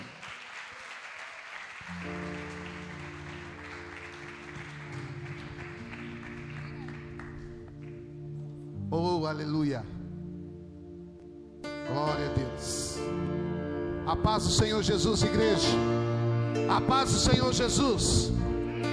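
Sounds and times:
audience applause: 0.0 - 8.1
sustained organ or keyboard chords: 1.8 - 18.9
speech: 8.9 - 9.9, 14.1 - 16.0, 16.6 - 18.4.

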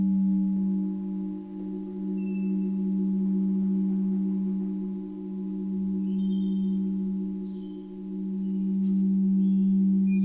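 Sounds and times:
faint bright chirps: 0.0 - 10.2
singing bowls ringing: 0.0 - 10.2.

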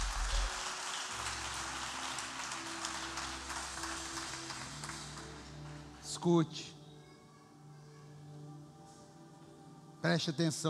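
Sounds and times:
audience applause: 0.0 - 6.0
speech: 6.2 - 6.8, 10.0 - 10.6.

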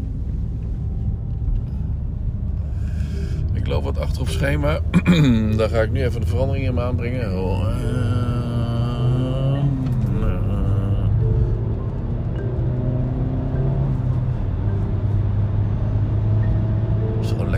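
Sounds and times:
small car engine driving: 0.0 - 17.5
speech: 3.7 - 8.1.

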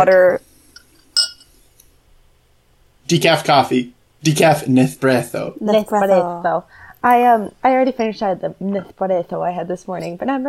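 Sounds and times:
speech: 0.0 - 0.5, 3.1 - 10.4
drinking glass clinking: 0.0 - 1.5.

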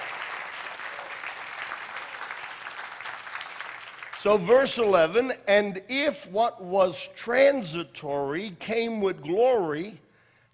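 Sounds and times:
audience applauding: 0.0 - 4.5
speech: 4.2 - 10.0.

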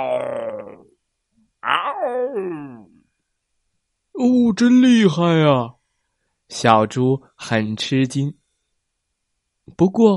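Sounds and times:
person's voice imitating a lion's roar: 0.0 - 0.9, 1.6 - 3.0
speech: 2.1 - 2.9, 4.2 - 5.8, 6.5 - 8.4, 9.7 - 10.1.

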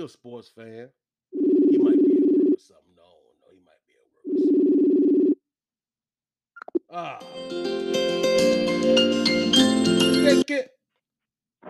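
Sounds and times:
speech: 0.0 - 1.0, 1.8 - 2.9, 6.9 - 9.0, 9.8 - 10.8
outgoing phone call ringing: 1.4 - 2.6, 4.3 - 5.4.

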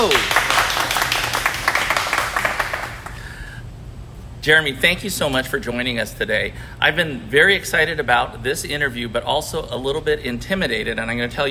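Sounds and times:
speech: 0.0 - 0.4, 4.4 - 11.4
small group clapping welcoming a podcast guest: 0.0 - 3.3.

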